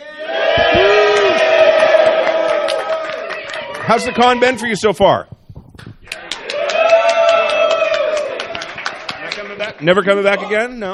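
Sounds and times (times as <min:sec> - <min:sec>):
live studio audience cheering and whooping at a convention panel: 0:00.0 - 0:04.8, 0:06.0 - 0:09.2
speech: 0:03.9 - 0:05.4, 0:09.6 - 0:10.9.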